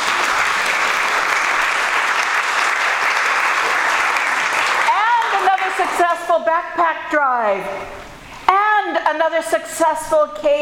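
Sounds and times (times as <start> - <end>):
audience applause: 0.0 - 6.0
speech: 5.8 - 8.1, 8.8 - 10.6.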